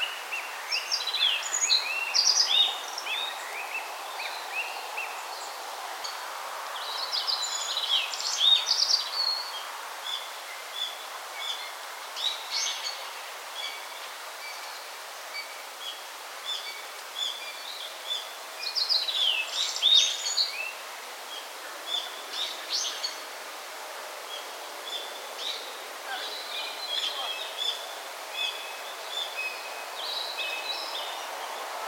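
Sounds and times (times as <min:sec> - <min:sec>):
steady background hiss: 0:00.0 - 0:31.8
yellow bunting singing: 0:25.0 - 0:29.4.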